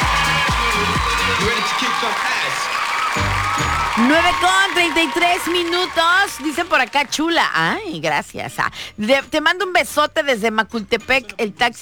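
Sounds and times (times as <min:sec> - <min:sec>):
applause with cheering: 0:00.0 - 0:07.4
bouncy musical bed with low blocky tones: 0:00.0 - 0:11.7
speech: 0:04.0 - 0:11.7.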